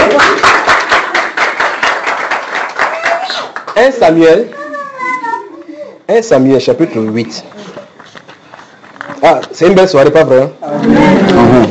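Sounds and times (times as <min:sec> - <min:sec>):
church congregation applauding: 0:00.0 - 0:04.1
speech: 0:03.8 - 0:04.6, 0:06.1 - 0:07.6, 0:09.2 - 0:11.7.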